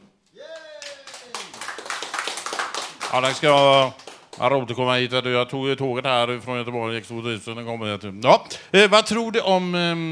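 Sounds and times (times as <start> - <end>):
applause: 0.4 - 4.5
speech: 3.1 - 10.1.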